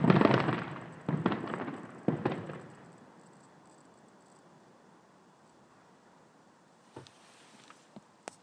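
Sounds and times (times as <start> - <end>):
large noisy fireworks at a marina: 0.0 - 3.0.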